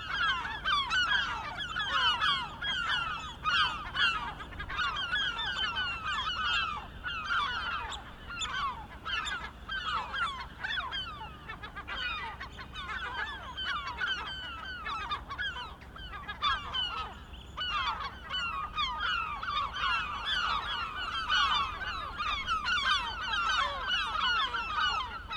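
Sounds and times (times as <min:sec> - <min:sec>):
chorus of several gulls squealing: 0:00.0 - 0:25.3.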